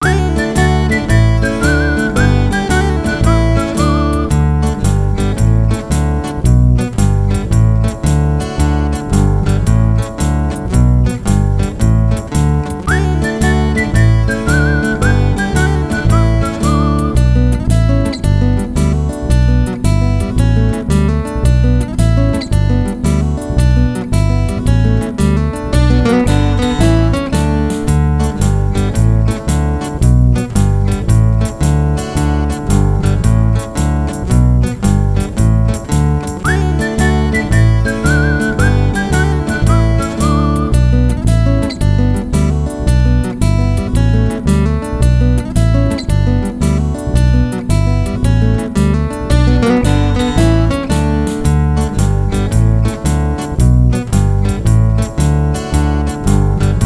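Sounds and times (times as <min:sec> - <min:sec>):
instrumental music: 0:00.0 - 0:56.8.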